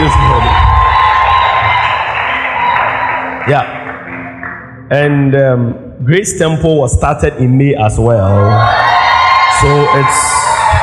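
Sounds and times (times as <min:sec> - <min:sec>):
audience shouting: 0:00.0 - 0:03.3, 0:08.4 - 0:10.8
audience clapping hands: 0:00.0 - 0:04.8
speech: 0:03.5 - 0:03.8, 0:04.9 - 0:09.0, 0:09.6 - 0:10.4.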